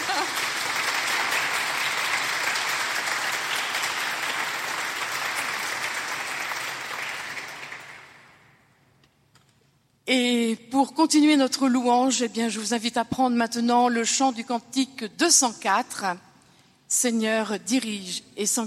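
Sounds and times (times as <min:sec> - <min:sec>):
audience clapping calmly: 0:00.0 - 0:08.5
speech: 0:10.1 - 0:16.3, 0:17.0 - 0:18.6.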